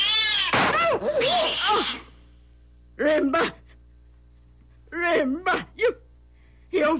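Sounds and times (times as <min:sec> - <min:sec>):
cat attacking with snarling yowls: 0:00.0 - 0:02.2
speech: 0:03.0 - 0:03.6, 0:05.0 - 0:06.0, 0:06.7 - 0:06.9.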